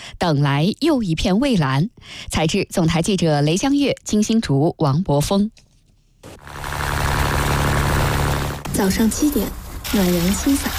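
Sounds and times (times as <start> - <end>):
speech: 0.2 - 5.6, 8.8 - 10.7
fishing boat motor running in Sanya Yazhou Central Fishing Port: 6.3 - 9.7.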